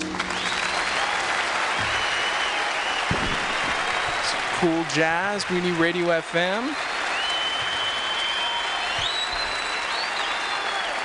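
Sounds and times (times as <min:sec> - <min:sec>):
audience applauding a jazz quartet: 0:00.0 - 0:11.0
whistles: 0:00.2 - 0:04.4, 0:06.6 - 0:11.0
speech: 0:04.6 - 0:06.9.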